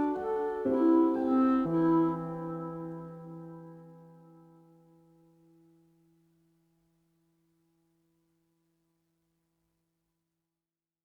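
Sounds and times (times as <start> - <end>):
chillout lounge piano music: 0.0 - 5.5.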